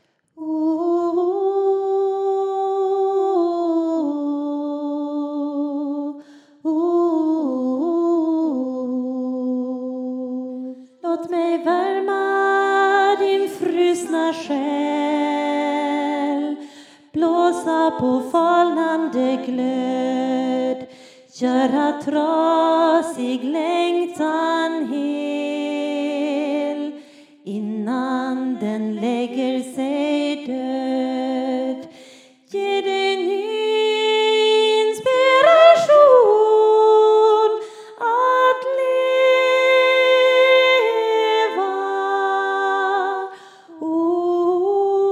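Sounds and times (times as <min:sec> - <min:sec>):
soprano singing: 0:00.4 - 0:45.1.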